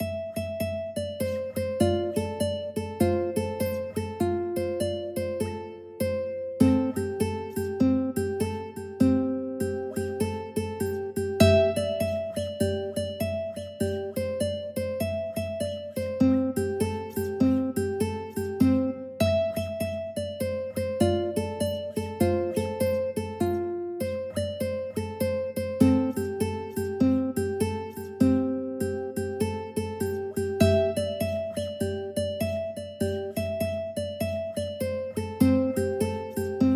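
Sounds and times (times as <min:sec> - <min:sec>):
ukulele: 0:00.0 - 0:36.7.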